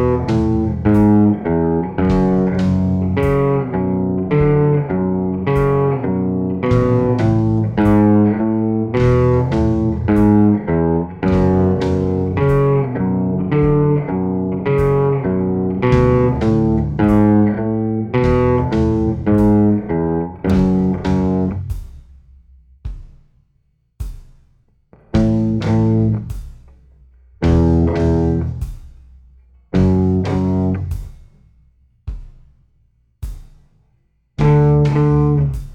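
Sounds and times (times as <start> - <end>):
slow guitar riff: 0.0 - 21.7, 25.0 - 26.3, 27.4 - 28.6, 29.8 - 31.0, 34.4 - 35.6.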